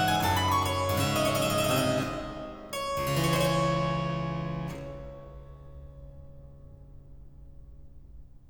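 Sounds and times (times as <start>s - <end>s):
harpsichord sarabande in D minor: 0.0s - 6.7s.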